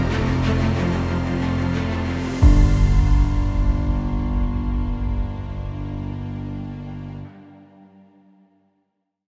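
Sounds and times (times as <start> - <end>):
battle music: 0.0 - 7.2.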